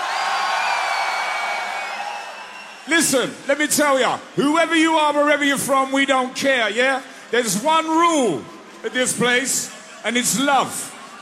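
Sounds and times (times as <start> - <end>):
large festival crowd screaming and cheering: 0.0 - 11.2
speech: 2.9 - 11.2.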